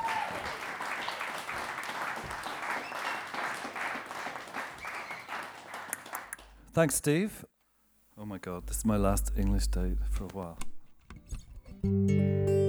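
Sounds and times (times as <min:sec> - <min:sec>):
audience applause welcoming a performer onto a stage: 0:00.0 - 0:06.6
speech: 0:06.8 - 0:07.5, 0:08.3 - 0:10.7, 0:11.8 - 0:12.4.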